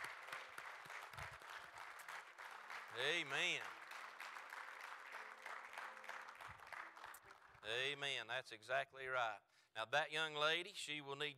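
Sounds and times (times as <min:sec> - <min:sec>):
audience applause: 0:00.0 - 0:07.9
speech: 0:03.0 - 0:03.8, 0:07.6 - 0:11.3.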